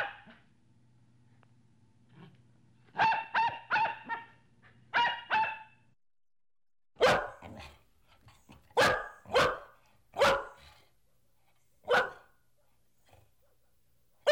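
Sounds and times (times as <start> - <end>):
medium-sized dog barking: 0.0 - 0.4, 2.9 - 5.8, 7.0 - 7.8, 8.7 - 10.9, 11.8 - 12.4.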